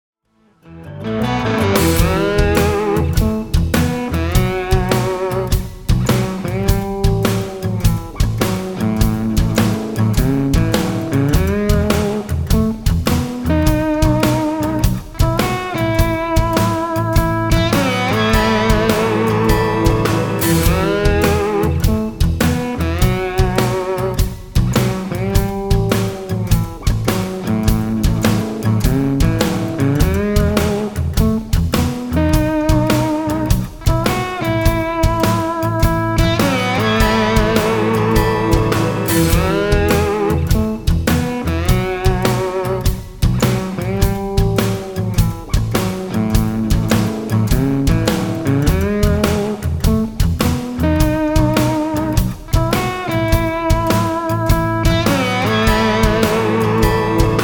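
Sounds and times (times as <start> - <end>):
boogie shuffle music in four-four time: 0.7 - 57.4.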